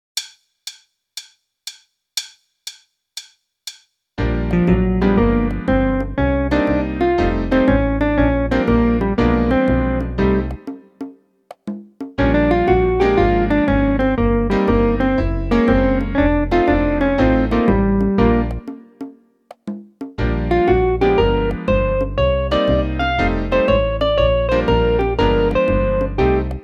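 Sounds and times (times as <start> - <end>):
solo swing music: 4.2 - 11.2, 12.1 - 19.2, 20.0 - 26.6.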